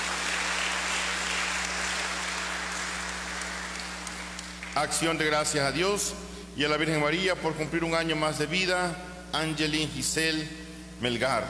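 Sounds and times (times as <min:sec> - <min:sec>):
audience applause: 0:00.0 - 0:04.8
speech: 0:04.8 - 0:11.4.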